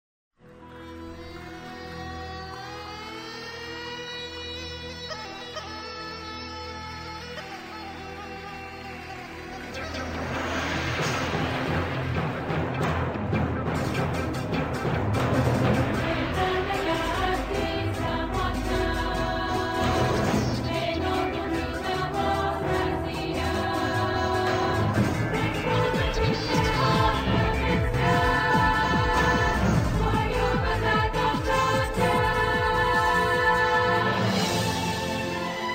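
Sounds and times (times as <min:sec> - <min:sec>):
techno remix: 0:02.1 - 0:35.6.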